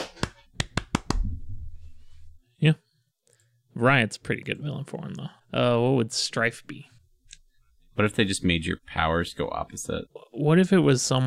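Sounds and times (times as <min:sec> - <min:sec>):
hands clapping: 0:00.0 - 0:01.3
speech: 0:02.6 - 0:02.8, 0:03.8 - 0:07.0, 0:08.0 - 0:11.2.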